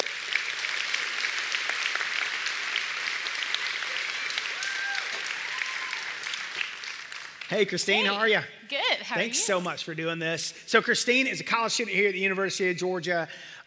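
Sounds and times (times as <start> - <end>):
audience applause welcoming a guest to the stage: 0.0 - 8.4
speech: 7.5 - 13.6.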